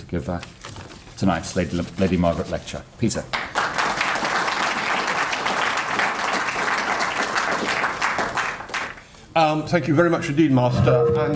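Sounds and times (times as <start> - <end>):
speech: 0.1 - 0.6, 1.2 - 3.4, 9.4 - 11.3
audience applause welcoming a speaker for an evening college lecture: 3.3 - 9.1.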